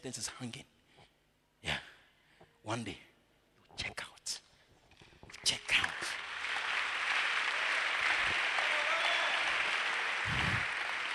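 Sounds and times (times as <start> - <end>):
speech: 0.0 - 0.8, 1.6 - 1.8, 2.6 - 3.1
audience clapping: 5.3 - 11.1.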